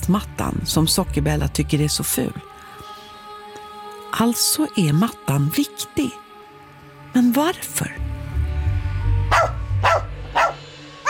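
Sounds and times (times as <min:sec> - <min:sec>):
speech: 0:00.1 - 0:02.5, 0:04.1 - 0:06.2, 0:07.1 - 0:08.0
poodle barking loudly: 0:09.3 - 0:11.0.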